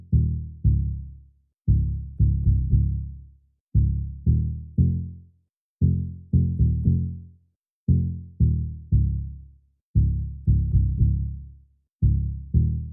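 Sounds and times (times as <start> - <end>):
bass loop in F minor: 0.0 - 1.1, 1.7 - 3.2, 3.8 - 5.1, 5.8 - 7.1, 7.9 - 9.4, 10.0 - 11.4, 12.0 - 12.9.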